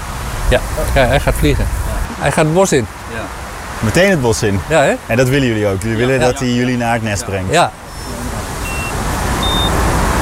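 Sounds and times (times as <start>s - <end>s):
steady broadband hiss: 0.0s - 10.2s
speech: 0.5s - 7.8s
beeps from a pistol-shaped radio tracking receiver: 7.9s - 10.2s.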